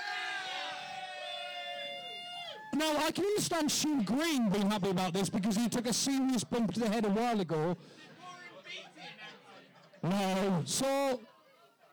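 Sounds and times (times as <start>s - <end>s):
crowd cheering and whooping: 0.0s - 3.0s
speech: 2.8s - 8.0s, 10.0s - 11.3s.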